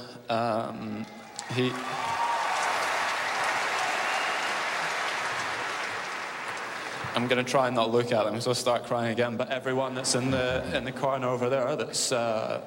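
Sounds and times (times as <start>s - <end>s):
speech: 0.3s - 2.2s, 7.2s - 12.6s
stadium crowd applauding: 1.2s - 7.7s.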